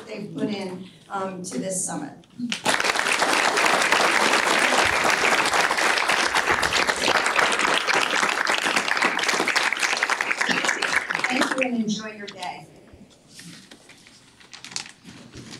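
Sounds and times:
speech: 0:00.1 - 0:03.0
audience applause: 0:02.5 - 0:11.7.

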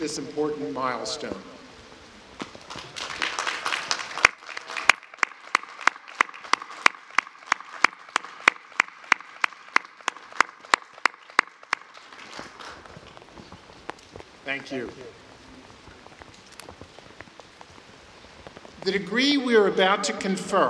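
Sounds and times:
speech: 0:00.0 - 0:01.6, 0:14.6 - 0:15.2, 0:18.9 - 0:20.6
graduation audience applause: 0:02.5 - 0:13.4.

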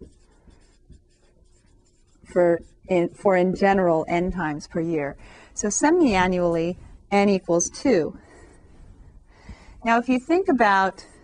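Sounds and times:
pen or marker writing during a maths lesson: 0:00.0 - 0:03.8
speech: 0:02.3 - 0:08.2, 0:09.8 - 0:11.1.

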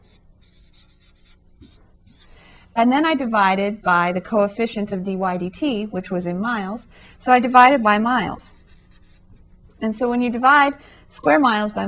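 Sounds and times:
handwriting strokes: 0:00.0 - 0:02.4, 0:08.5 - 0:09.5
speech: 0:02.8 - 0:08.5, 0:09.8 - 0:11.8.

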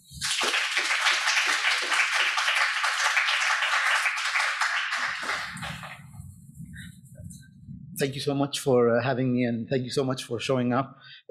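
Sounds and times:
audience applause welcoming two speakers to a talk: 0:00.0 - 0:06.0
speech: 0:08.0 - 0:11.2.

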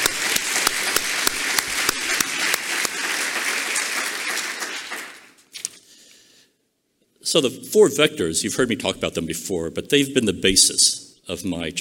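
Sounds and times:
audience applause: 0:00.0 - 0:05.4
speech: 0:07.3 - 0:11.7.

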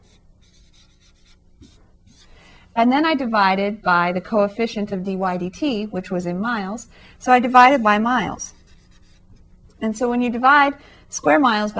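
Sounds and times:
numbers being written by hand during a calculus lecture: 0:00.0 - 0:02.3, 0:08.5 - 0:09.5
speech: 0:02.8 - 0:08.5, 0:09.8 - 0:11.7.

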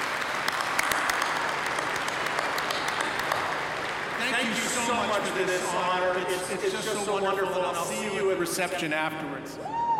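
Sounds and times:
audience applause: 0:00.0 - 0:06.8
speech: 0:04.4 - 0:09.9.

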